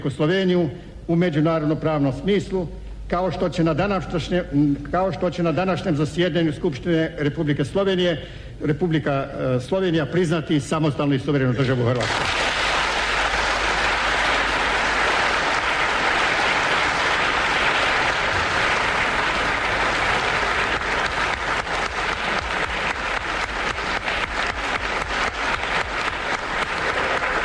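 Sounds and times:
speech: 0.0s - 12.4s
loud applause from parliament members: 12.0s - 27.4s.

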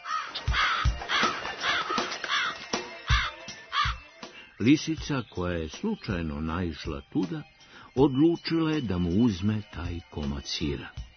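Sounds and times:
raven cawing: 0.0s - 4.1s
speech: 4.6s - 11.0s.

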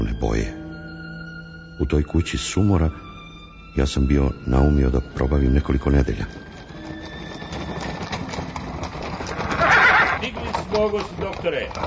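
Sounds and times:
speech: 1.8s - 3.1s, 3.7s - 6.5s, 10.7s - 11.8s
restless horses hooves: 4.6s - 11.8s
restless horses neighing: 6.8s - 11.8s.

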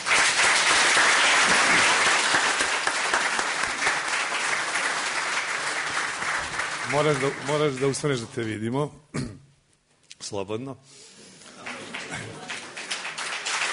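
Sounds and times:
audience applause welcoming a poet: 0.0s - 8.3s, 11.5s - 13.7s
speech: 6.9s - 9.4s, 10.3s - 11.1s.

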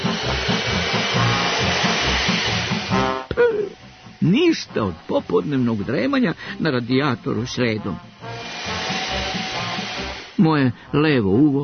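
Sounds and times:
vacuum cleaner running: 0.0s - 11.6s
speech: 4.3s - 8.1s, 10.4s - 11.6s.

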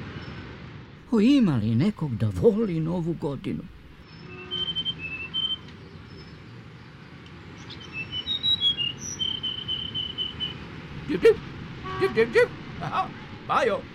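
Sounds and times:
city traffic rumble: 0.0s - 13.9s
speech: 1.1s - 3.8s, 11.1s - 11.4s, 12.2s - 13.9s
sparrow chirping near a busy crosswalk: 4.0s - 6.4s, 7.6s - 10.7s.

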